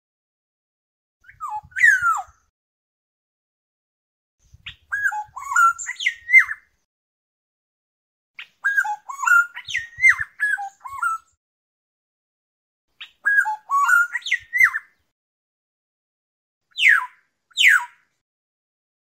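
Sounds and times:
black-naped oriole fluting whistles: 0:01.2 - 0:02.5, 0:04.7 - 0:06.7, 0:08.6 - 0:11.3, 0:13.0 - 0:15.0, 0:16.7 - 0:18.0.

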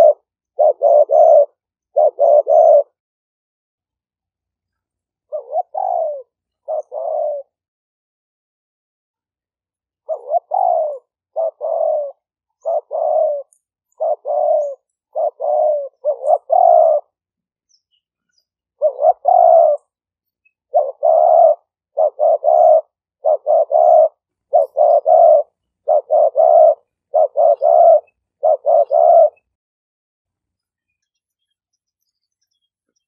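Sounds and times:
spotted dove cooing: 0:00.0 - 0:03.0, 0:05.3 - 0:07.6, 0:10.0 - 0:17.2, 0:18.8 - 0:20.0, 0:20.6 - 0:29.6.

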